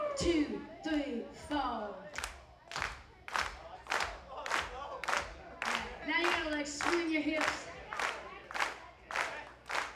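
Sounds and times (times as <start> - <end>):
speech: 0.2 - 2.0
group clapping in rhythm: 2.0 - 9.9.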